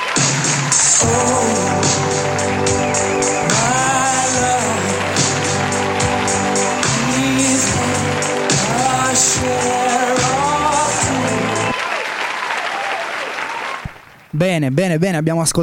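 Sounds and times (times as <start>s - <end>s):
studio applause: 0.0s - 14.0s
speech: 0.2s - 3.2s, 14.4s - 15.6s.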